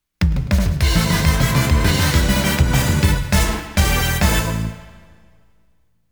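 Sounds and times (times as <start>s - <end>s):
stage clear victory jingle: 0.8s - 5.4s.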